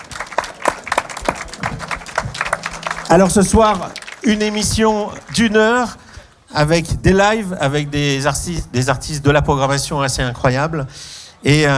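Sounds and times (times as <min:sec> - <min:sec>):
festival audience clapping: 0:00.0 - 0:06.4
busy crowd background: 0:00.0 - 0:11.7
speech: 0:03.1 - 0:06.0, 0:06.6 - 0:11.7.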